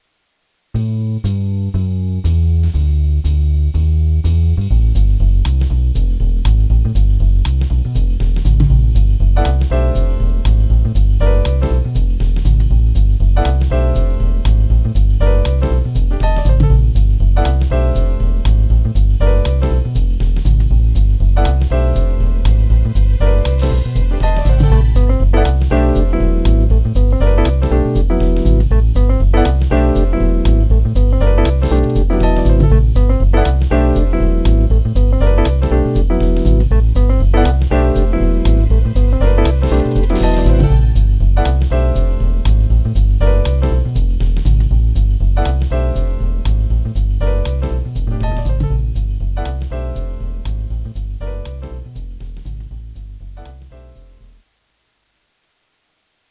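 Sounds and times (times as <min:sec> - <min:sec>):
jazz music: 0:00.8 - 0:54.4.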